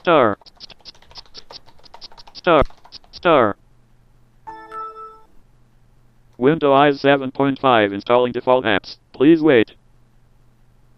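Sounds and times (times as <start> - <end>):
speech: 0.0 - 0.6, 2.4 - 2.7, 6.5 - 9.7
electronic tone: 4.5 - 5.3.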